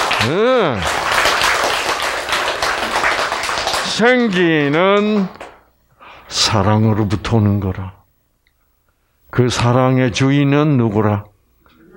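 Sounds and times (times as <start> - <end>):
audience clapping: 0.0 - 5.6
voiced exclamation: 0.2 - 0.9
speech: 0.2 - 1.0, 4.0 - 5.4, 6.3 - 8.0, 9.4 - 11.3.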